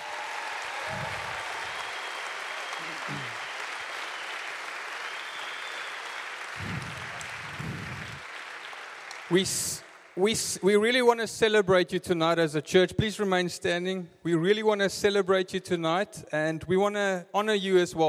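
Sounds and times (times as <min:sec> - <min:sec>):
church audience applause: 0:00.0 - 0:10.2
low murmurs: 0:02.8 - 0:03.4, 0:06.6 - 0:08.3
speech: 0:09.3 - 0:18.0.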